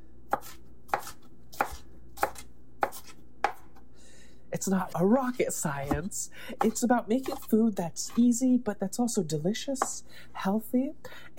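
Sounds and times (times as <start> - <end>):
knife coarsely mincing food on a cutting board: 0.3 - 3.8, 4.8 - 8.3
speech: 4.6 - 11.3.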